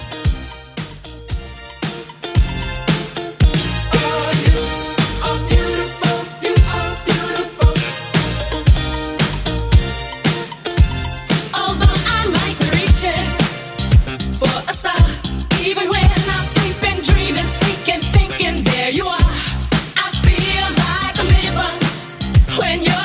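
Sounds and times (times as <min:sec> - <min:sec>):
70s-style Redrum drum machine beat: 0:00.0 - 0:23.0.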